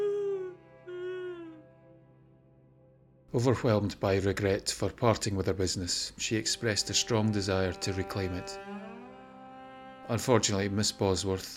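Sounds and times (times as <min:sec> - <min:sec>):
woman crying and screaming: 0:00.0 - 0:01.6
speech: 0:03.3 - 0:08.8, 0:10.1 - 0:11.5.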